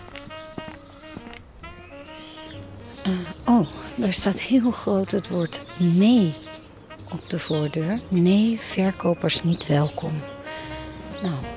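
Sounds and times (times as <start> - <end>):
footsteps walking toward a house along a street: 0.0 - 3.0
steady tonal background: 0.0 - 11.5
speech: 3.1 - 6.4, 7.1 - 10.3, 11.2 - 11.5.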